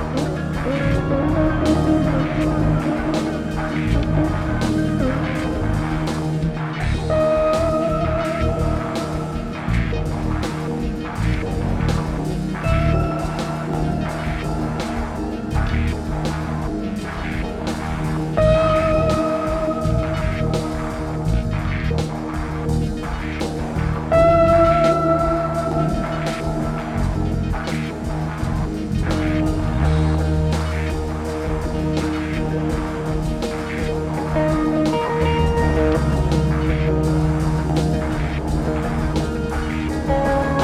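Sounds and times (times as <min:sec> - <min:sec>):
drums: 0:00.0 - 0:40.6.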